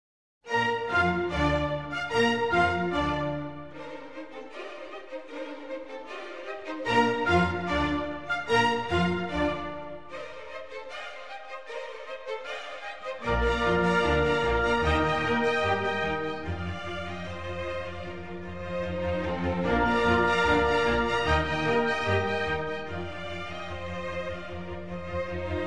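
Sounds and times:
orchestral symphony in B-flat major, allegro movement: 0:00.5 - 0:25.6.

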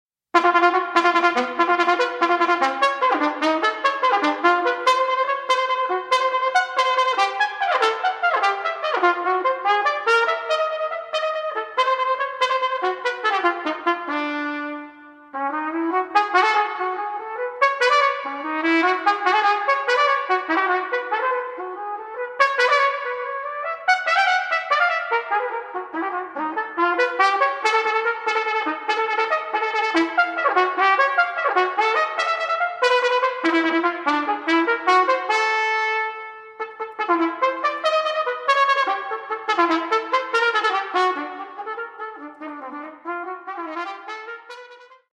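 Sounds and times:
unaccompanied solo trumpet: 0:00.3 - 0:45.1.

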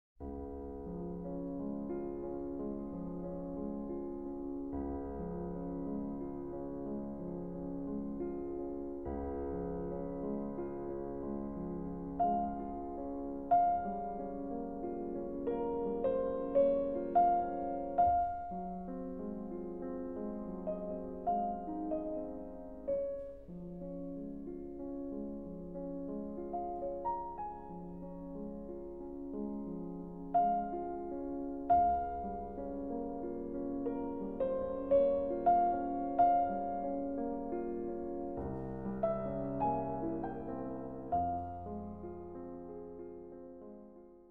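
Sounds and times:
lento placido music in D-flat major: 0:00.2 - 0:44.2.

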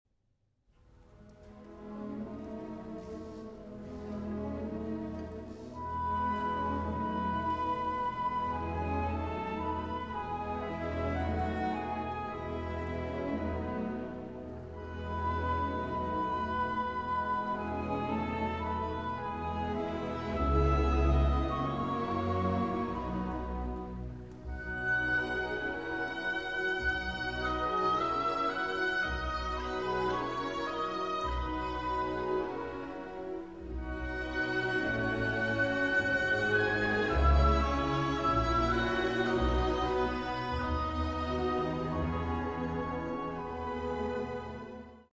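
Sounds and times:
orchestra playing a berceuse: 0:01.2 - 0:45.1.

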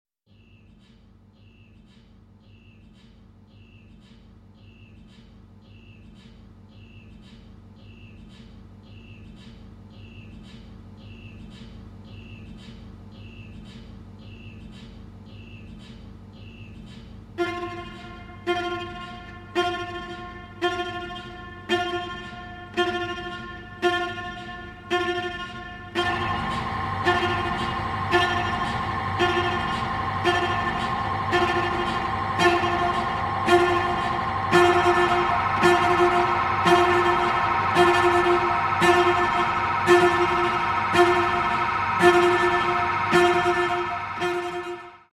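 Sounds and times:
chorale: 0:17.4 - 0:45.1.

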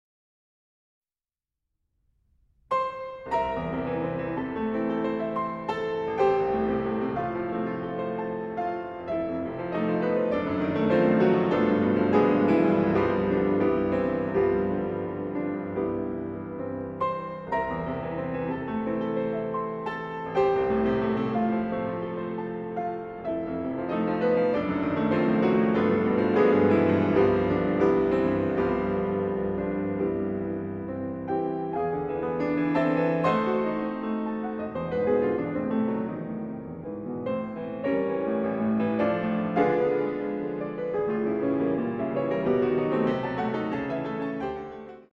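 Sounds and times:
piano intermezzo in A minor: 0:02.7 - 0:45.1.

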